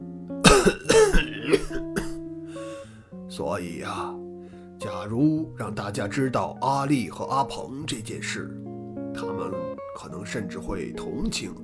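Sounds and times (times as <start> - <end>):
person coughing: 0.4 - 2.2
speech: 3.4 - 4.2, 4.8 - 8.6, 9.4 - 11.6.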